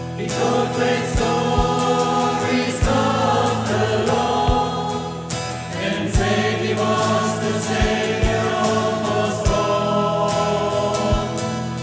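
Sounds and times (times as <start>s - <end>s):
hymn: 0.2s - 11.8s.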